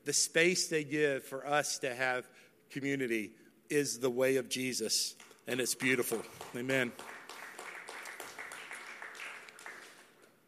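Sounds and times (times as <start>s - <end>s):
speech: 0.0s - 7.2s
audience clapping: 5.5s - 10.4s.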